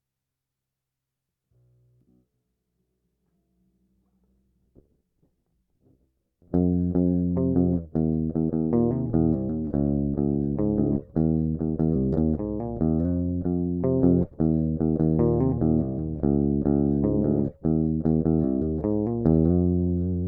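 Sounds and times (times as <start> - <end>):
lead melody: 6.6 - 20.2.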